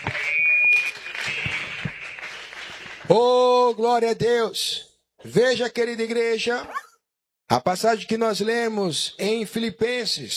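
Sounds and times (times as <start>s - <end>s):
church audience applauding: 0.0s - 3.3s
speech: 3.1s - 6.8s, 7.5s - 10.3s.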